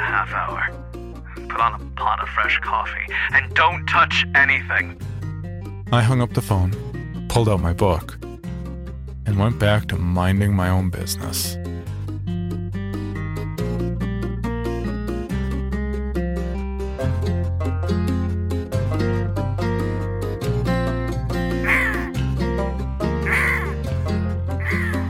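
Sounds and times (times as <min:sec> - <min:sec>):
music track with pulsing bass and regular beat: 0:00.0 - 0:25.0
speech: 0:00.2 - 0:00.8, 0:01.5 - 0:05.1, 0:05.9 - 0:08.2, 0:09.3 - 0:11.7
voices imitating crow caws: 0:21.5 - 0:22.2, 0:23.1 - 0:23.9, 0:24.5 - 0:25.0.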